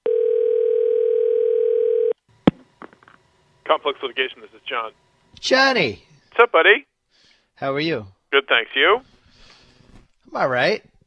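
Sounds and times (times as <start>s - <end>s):
telephone ringback tone of a call ringing out: 0.0s - 2.2s
speech: 3.7s - 6.9s, 7.6s - 9.2s, 10.3s - 10.9s.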